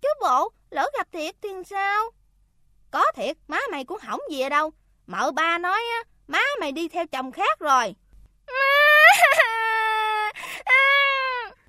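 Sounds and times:
speech: 1.2s - 2.2s, 2.9s - 9.4s
girl bursting into tears: 8.5s - 11.6s
girl gasping: 10.3s - 10.8s.

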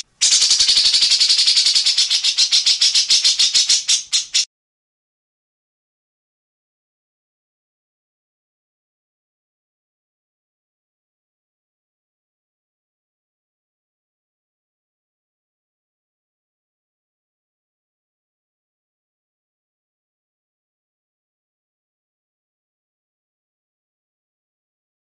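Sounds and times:
grey-cheeked bulbul harsh rattling song: 0.0s - 4.5s.

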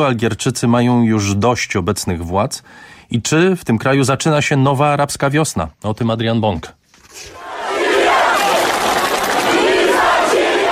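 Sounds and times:
speech: 0.0s - 7.5s
crowd of protesters chanting in Algiers: 7.4s - 10.7s.

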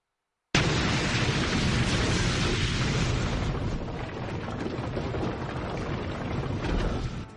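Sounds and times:
powerful explosion inside a sealed cave: 0.6s - 7.3s.

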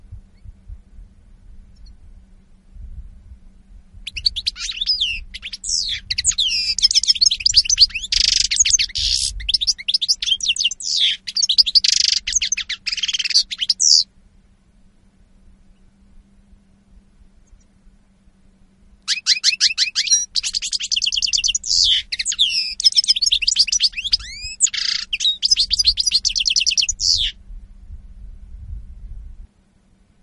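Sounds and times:
European goldfinch song: 1.7s - 2.0s, 4.0s - 14.1s, 17.4s - 17.8s, 19.1s - 27.4s.

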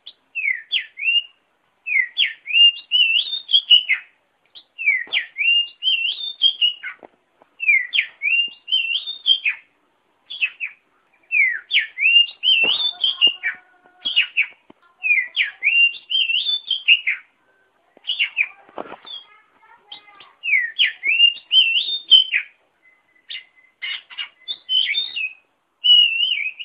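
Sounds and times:
oriental magpie-robin song: 0.4s - 1.3s, 1.9s - 4.1s, 4.8s - 7.0s, 7.6s - 9.6s, 10.3s - 17.3s, 20.4s - 26.6s.

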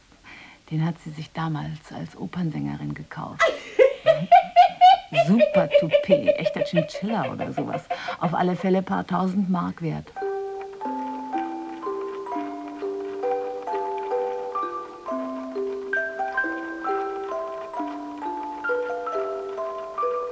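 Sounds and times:
speech: 0.7s - 4.3s, 5.1s - 10.2s
laughter: 3.4s - 9.4s
candle-driven angel chime carousel tinkling: 10.2s - 20.2s.

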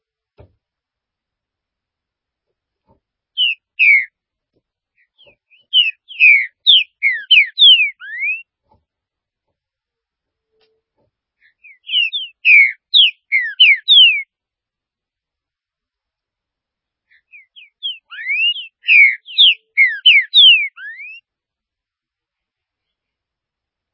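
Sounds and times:
green-winged saltator whistled song: 3.4s - 4.1s, 5.2s - 8.4s, 11.6s - 14.3s, 17.2s - 21.2s.

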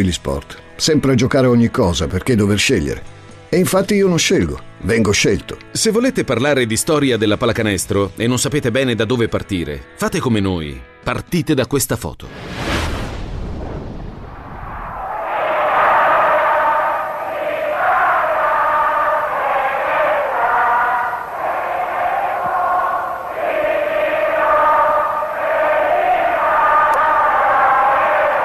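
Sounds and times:
speech: 0.0s - 12.6s
crowd cheering and singing in a square: 14.8s - 28.4s.

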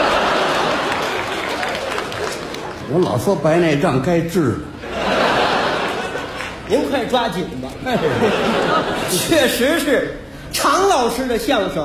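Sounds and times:
laughter: 0.0s - 2.9s, 4.8s - 7.0s, 7.7s - 9.9s
second-floor audience applause at a crosstalk comedy performance: 0.0s - 3.4s, 5.3s - 6.7s
speech: 2.9s - 4.8s, 6.7s - 11.8s.

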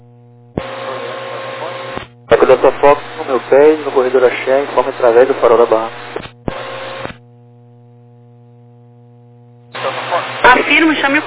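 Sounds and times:
open radio carrier low buzzing hum: 0.0s - 11.2s
harsh radio static hiss: 0.5s - 7.2s, 9.6s - 11.2s
speech: 2.3s - 6.0s.

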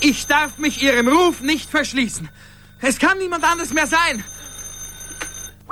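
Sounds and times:
speech: 0.0s - 4.4s
long ringing of a bell: 0.0s - 5.6s.

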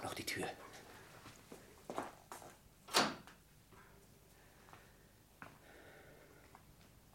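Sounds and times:
speech: 0.2s - 0.7s
wooden window shutters being closed: 2.9s - 3.4s.

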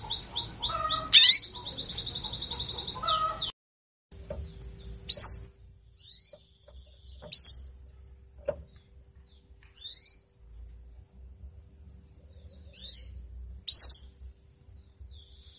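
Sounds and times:
female canary singing: 0.0s - 3.5s, 4.2s - 8.1s, 8.7s - 10.3s, 12.3s - 15.5s.

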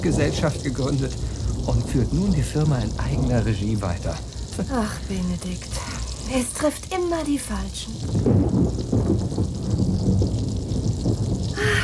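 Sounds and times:
thunder: 0.0s - 6.6s, 7.9s - 11.8s
speech: 0.0s - 9.4s
rain: 0.0s - 11.8s.

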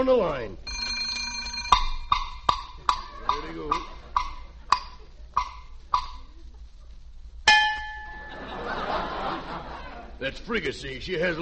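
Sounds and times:
speech: 0.0s - 0.7s, 3.4s - 4.0s, 10.2s - 11.3s
faint tonal hum: 0.0s - 11.3s
alarm clock bell ringing: 0.7s - 2.5s, 7.5s - 8.5s
laughter: 2.8s - 7.0s, 8.2s - 10.3s.

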